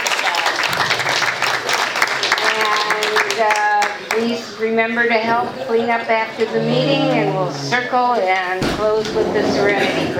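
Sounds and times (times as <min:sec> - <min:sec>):
audience applause: 0:00.0 - 0:04.2
speech: 0:04.2 - 0:10.1.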